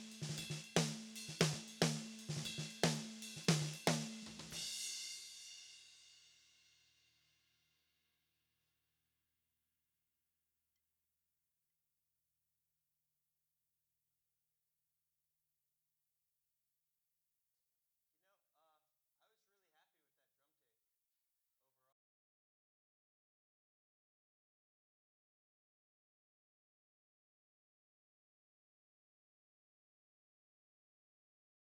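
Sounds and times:
snare drum: 0.0 - 6.1.

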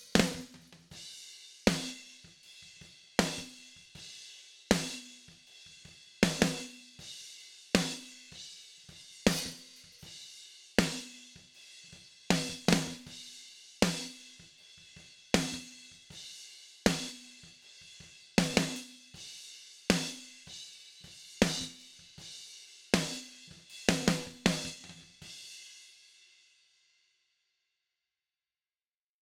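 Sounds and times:
snare drum: 0.0 - 1.0, 1.7 - 2.2, 3.2 - 3.7, 4.7 - 5.3, 6.2 - 6.8, 7.8 - 8.3, 9.2 - 10.1, 10.8 - 11.2, 12.3 - 13.2, 13.8 - 14.4, 15.4 - 15.8, 16.9 - 17.4, 18.4 - 19.0, 19.9 - 20.5, 21.3 - 22.3, 23.0 - 25.2.

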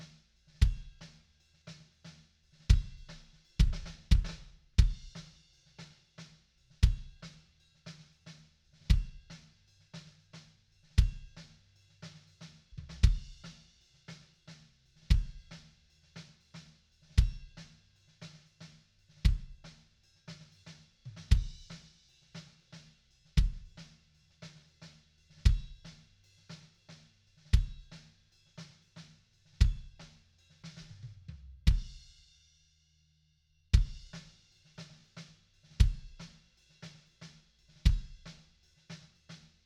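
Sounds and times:
kick drum: 0.6 - 1.0, 2.7 - 5.2, 6.8 - 7.2, 8.9 - 9.3, 11.0 - 11.4, 12.9 - 13.4, 15.1 - 15.5, 17.2 - 17.6, 19.2 - 19.6, 21.3 - 21.7, 23.4 - 23.8, 25.4 - 25.8, 27.5 - 27.9, 29.6 - 30.0, 31.6 - 32.0, 33.8 - 34.2, 35.8 - 36.3, 37.8 - 38.2.

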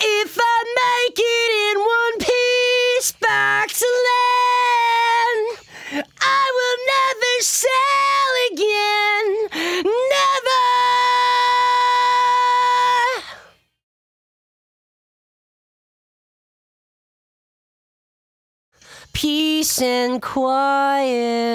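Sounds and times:
lead vocals: 0.0 - 13.6, 18.8 - 21.5.

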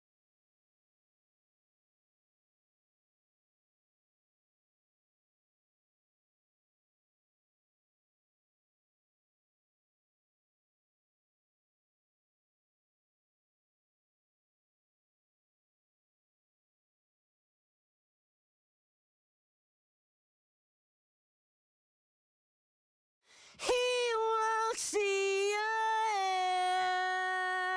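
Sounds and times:
main vocals: 23.4 - 27.7.

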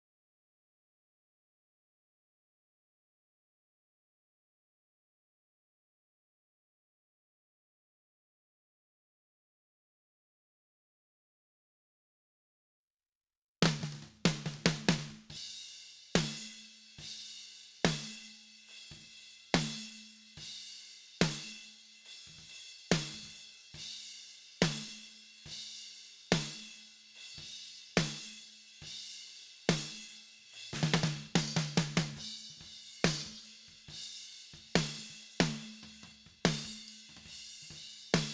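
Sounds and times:
snare drum: 13.6 - 15.4, 17.9 - 18.2, 19.0 - 19.9, 21.2 - 21.6, 22.2 - 23.4, 24.6 - 25.0, 30.7 - 38.3.

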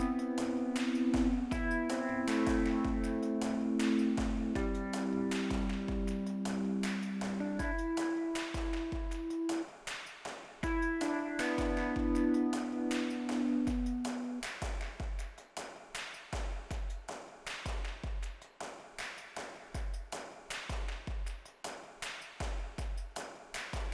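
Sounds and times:
Rhodes electric piano: 0.0 - 9.6, 10.8 - 14.4
percussion: 0.0 - 23.9.

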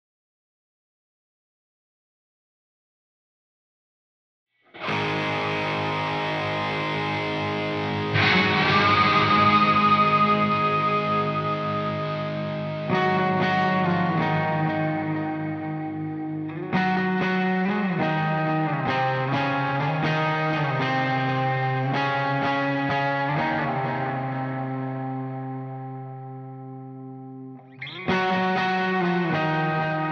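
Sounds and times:
bass guitar: 4.8 - 30.0.

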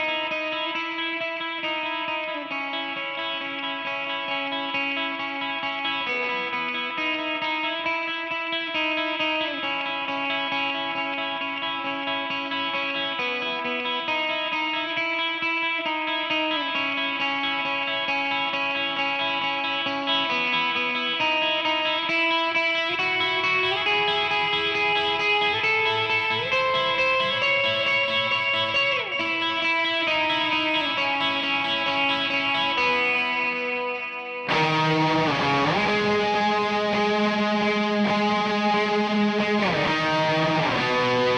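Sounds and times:
guitar: 0.0 - 41.3.

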